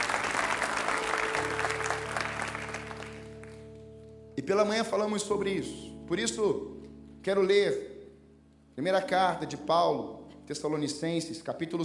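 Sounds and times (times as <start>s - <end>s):
audience applauding: 0.0s - 3.6s
speech: 4.5s - 7.9s, 8.8s - 11.8s.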